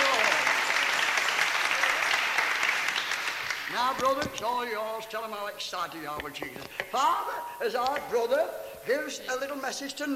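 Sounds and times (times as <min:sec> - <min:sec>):
audience clapping: 0:00.0 - 0:04.4
speech: 0:03.8 - 0:10.1.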